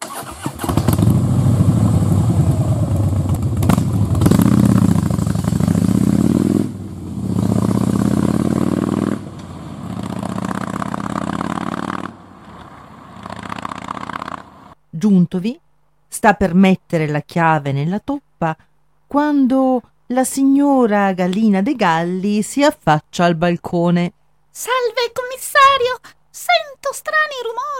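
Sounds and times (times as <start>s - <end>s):
Harley Davidson motorcycle engine starting and riding off: 0.0s - 14.8s
speech: 15.0s - 27.7s.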